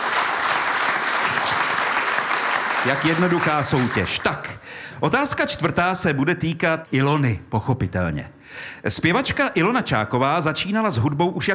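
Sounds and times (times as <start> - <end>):
studio audience applause at a quiz show: 0.0 - 4.4
speech: 2.8 - 11.5.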